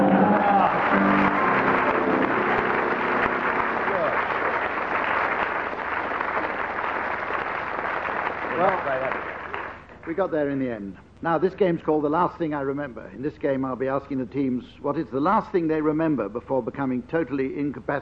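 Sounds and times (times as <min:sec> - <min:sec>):
prolonged audience applause: 0:00.0 - 0:10.2
speech: 0:10.2 - 0:18.0.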